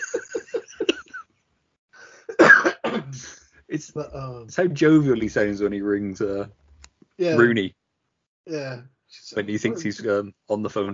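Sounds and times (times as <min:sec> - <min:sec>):
laughter: 0:00.0 - 0:01.2
breathy bursts: 0:02.0 - 0:02.4
heavy chesty cough: 0:02.2 - 0:03.4
speech: 0:03.7 - 0:06.6, 0:07.2 - 0:07.8, 0:08.5 - 0:10.9.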